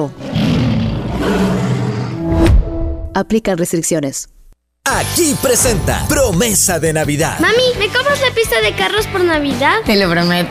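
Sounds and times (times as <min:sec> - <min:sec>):
speech: 0:00.0 - 0:00.2, 0:01.2 - 0:01.7, 0:03.2 - 0:10.4
lion roaring: 0:00.0 - 0:02.4.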